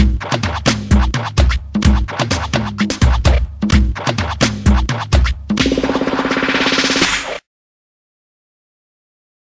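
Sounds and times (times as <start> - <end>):
funk music: 0.0 - 7.4.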